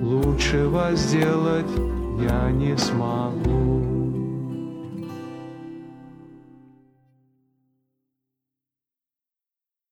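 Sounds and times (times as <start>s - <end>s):
Russian song: 0.0s - 6.7s.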